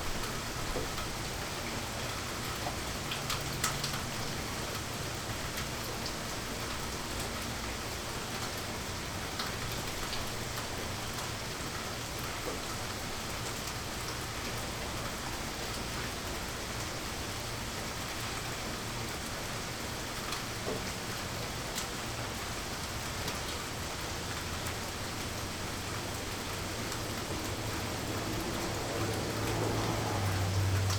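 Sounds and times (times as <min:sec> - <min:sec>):
rain in Toronto: 0:00.0 - 0:30.9
traffic passing in Toronto: 0:23.1 - 0:30.9.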